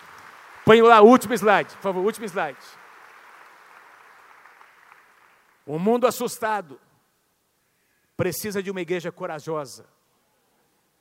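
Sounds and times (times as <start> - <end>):
crowd applause: 0.0 - 5.6
speech: 0.7 - 2.8, 5.7 - 6.8, 8.2 - 10.0.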